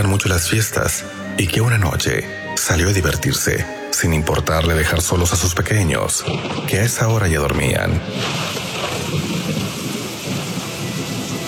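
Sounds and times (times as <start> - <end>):
speech: 0.0 - 9.4
thunderstorm with heavy rain: 6.0 - 11.4.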